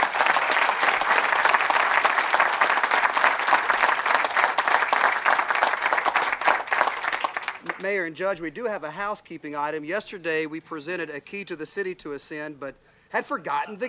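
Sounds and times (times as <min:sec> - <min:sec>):
audience applause: 0:00.0 - 0:07.9
speech: 0:07.8 - 0:13.8.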